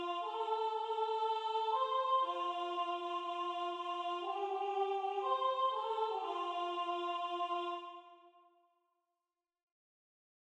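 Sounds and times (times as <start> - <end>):
soprano singing a religious folk song: 0.0 - 8.1.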